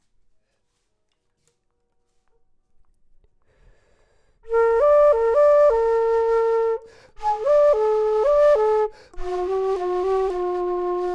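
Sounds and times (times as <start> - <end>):
low flute: 4.4 - 11.1.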